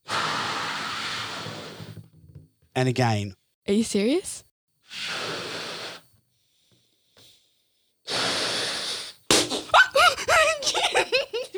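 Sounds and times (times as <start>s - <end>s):
balloon being blown up in one forceful breath: 0.0s - 2.1s, 4.9s - 6.1s, 8.1s - 9.7s
speech: 2.8s - 5.3s
laughter: 9.7s - 11.5s.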